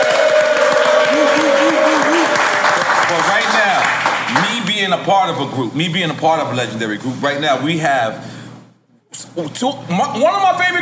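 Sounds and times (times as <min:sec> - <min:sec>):
crowd applauding and cheering at a live event: 0:00.0 - 0:04.7
speech: 0:04.9 - 0:08.3, 0:09.2 - 0:10.8.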